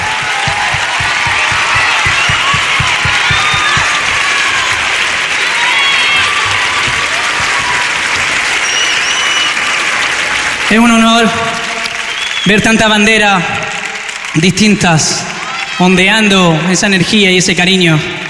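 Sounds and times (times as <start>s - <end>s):
audience applause: 0.0s - 18.2s
cheers: 0.0s - 18.2s
faint whistles: 8.6s - 9.6s, 12.0s - 12.7s
speech: 12.4s - 13.6s, 14.3s - 18.2s.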